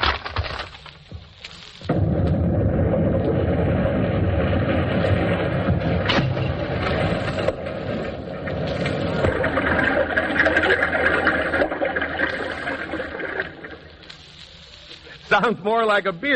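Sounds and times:
explosion record: 1.9 - 13.7
speech: 15.4 - 16.3.

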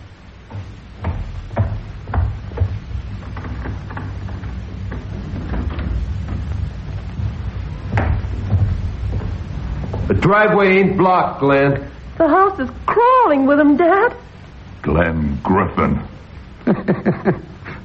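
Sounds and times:
door thudding shut: 0.5 - 10.2
speech: 10.3 - 17.8
laughter: 16.6 - 17.8.

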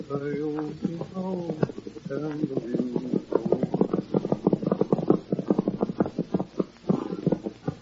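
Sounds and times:
horse hooves clip-clopping as a lone horseman rides at night: 0.1 - 7.8.

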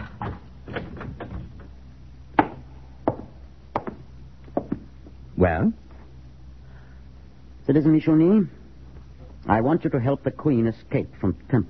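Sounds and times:
door rattling: 0.0 - 1.8
speech: 5.4 - 5.8, 7.7 - 8.6, 9.5 - 11.6.

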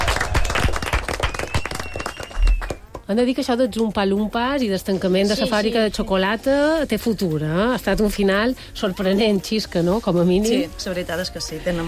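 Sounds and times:
small group clapping for a performer: 0.0 - 3.1
speech: 3.1 - 11.8.

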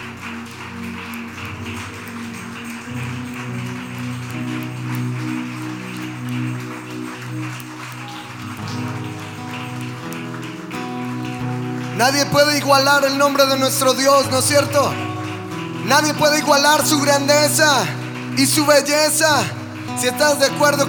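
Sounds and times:
crowd clapping: 0.0 - 20.8
sustained droning music chords: 0.0 - 20.8
speech: 12.0 - 15.1, 15.9 - 20.8.

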